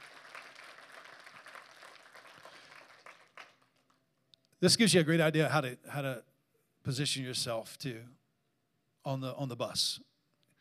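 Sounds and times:
audience clapping: 0.0s - 4.0s
speech: 4.6s - 8.2s, 9.0s - 10.1s.

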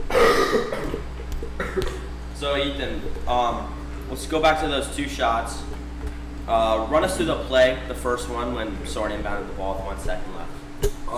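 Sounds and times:
person coughing: 0.1s - 2.1s
speech: 2.5s - 5.7s, 6.5s - 11.1s.

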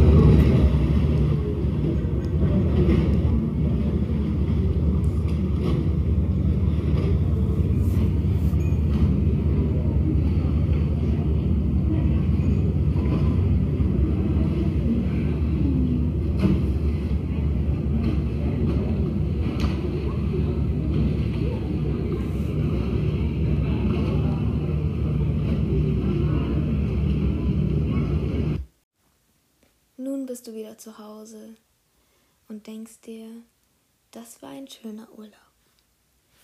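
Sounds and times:
gondolas passing along a canal: 0.0s - 28.6s
speech: 30.4s - 31.7s, 32.5s - 33.5s, 34.1s - 35.4s.

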